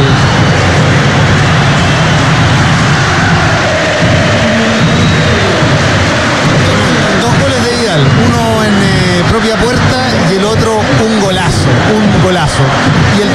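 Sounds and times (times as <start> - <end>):
stadium crowd ovation with applause and cheering: 0.0 - 13.3.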